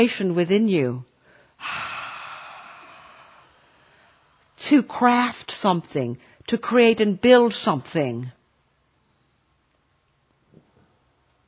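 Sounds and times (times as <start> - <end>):
speech: 0.0 - 1.9, 4.6 - 8.4
deep breath: 1.2 - 4.4.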